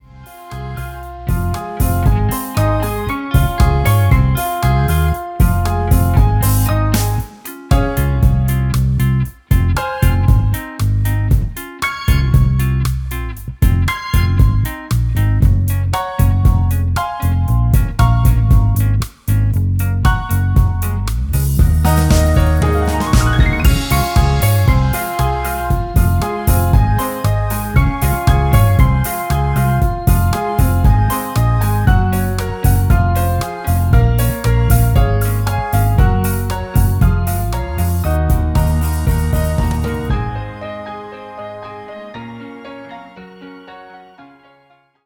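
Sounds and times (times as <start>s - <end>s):
instrumental soundtrack music: 0.0s - 44.8s.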